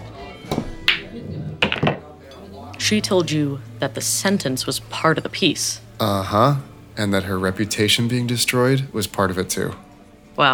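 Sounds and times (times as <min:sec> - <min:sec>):
pool cue and billiard balls clacking as the 8-ball is shot into a corner pocket: 0:00.5 - 0:02.2
speech: 0:02.9 - 0:10.5.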